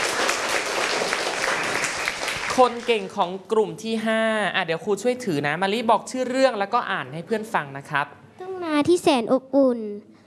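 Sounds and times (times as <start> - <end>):
classroom applause: 0.0 - 3.2
speech: 2.6 - 8.2, 8.8 - 10.1.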